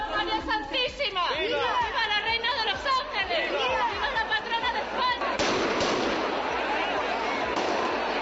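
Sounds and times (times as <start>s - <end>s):
village festival crowd chattering and shouting: 0.0s - 8.1s
laughter: 1.0s - 5.5s
shotgun blasts at village festival: 5.4s - 6.4s.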